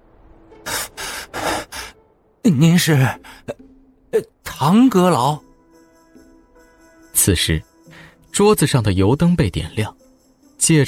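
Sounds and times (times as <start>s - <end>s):
heavy panting, gasping for breath: 0.7s - 2.0s
speech: 2.4s - 5.4s, 7.2s - 7.7s, 8.4s - 10.0s, 10.6s - 10.8s.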